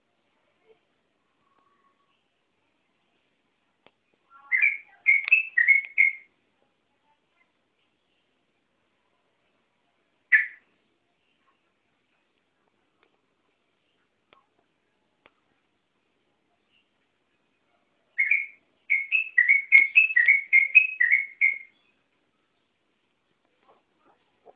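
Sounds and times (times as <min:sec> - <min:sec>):
yellow-vented bulbul song of warbled whistled notes: 0:04.3 - 0:06.3, 0:10.3 - 0:10.7, 0:18.1 - 0:22.1.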